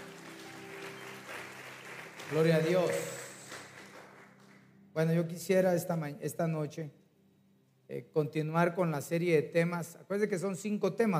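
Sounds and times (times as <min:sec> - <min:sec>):
audience clapping hands: 0:00.0 - 0:04.8
speech: 0:02.3 - 0:03.2, 0:05.0 - 0:07.0, 0:07.9 - 0:11.1.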